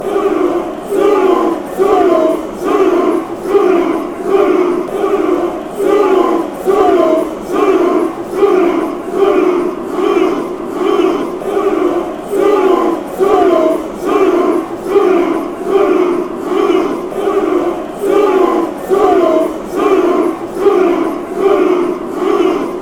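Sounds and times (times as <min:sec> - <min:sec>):
football crowd chanting: 0:00.0 - 0:22.7.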